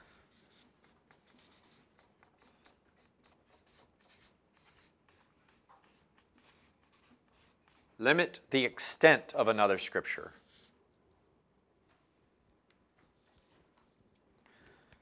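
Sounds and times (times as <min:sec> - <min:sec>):
pen writing a note on paper: 0:00.3 - 0:07.9, 0:10.2 - 0:10.7
speech: 0:08.0 - 0:10.4.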